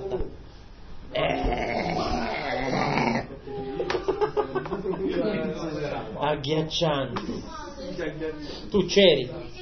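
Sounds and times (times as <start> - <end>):
loud burp: 1.1 - 3.3
laughter: 3.3 - 6.2
speech: 6.3 - 9.6.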